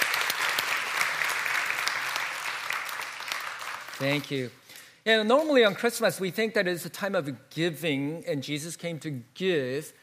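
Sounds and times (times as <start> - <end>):
audience applause: 0.0 - 4.3
speech: 4.0 - 10.0.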